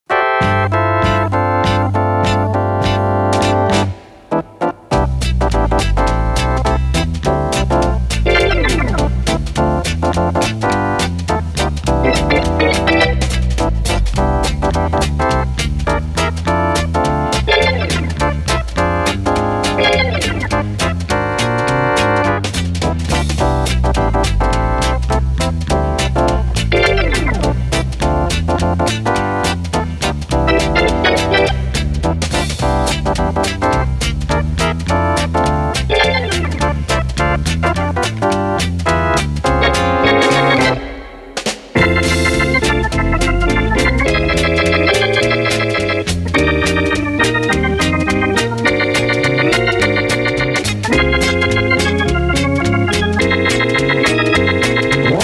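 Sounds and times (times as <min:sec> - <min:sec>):
Hammond organ: 0:00.1 - 0:55.2.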